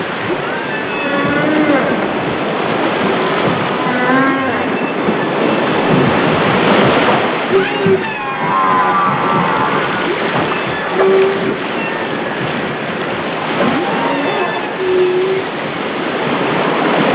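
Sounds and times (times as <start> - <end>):
constant churning water noise: 0.0 - 17.1
Humpback whale song units: 0.3 - 2.2, 3.7 - 5.7, 7.5 - 12.4, 13.6 - 15.5.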